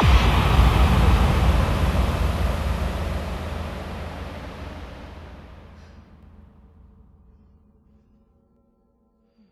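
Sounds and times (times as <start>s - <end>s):
bass drum FX kicks: 0.0s - 6.1s.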